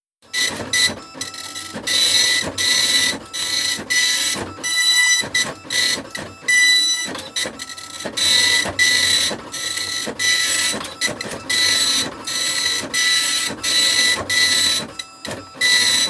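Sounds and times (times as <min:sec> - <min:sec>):
printer printing: 0:00.3 - 0:16.0.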